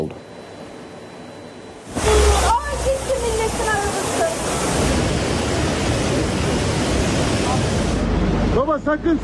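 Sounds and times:
rushing flood water: 2.0s - 8.1s
speech: 8.9s - 9.2s.

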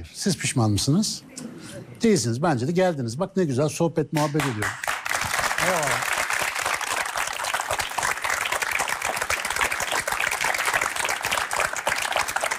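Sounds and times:
speech: 0.0s - 4.9s
audience applause: 4.2s - 12.5s.

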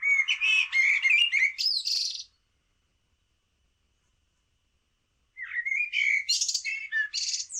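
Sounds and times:
common blackbird singing: 0.0s - 2.4s, 5.4s - 7.5s.

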